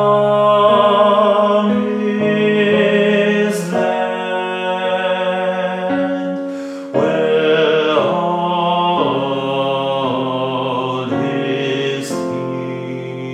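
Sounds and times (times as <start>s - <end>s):
alternate take of a music piece: 0.0s - 13.3s.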